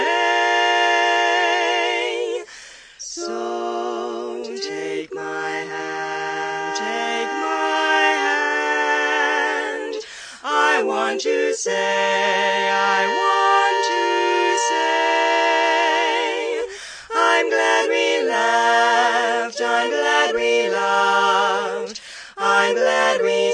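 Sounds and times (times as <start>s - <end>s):
four-part singing: 0.0s - 23.5s.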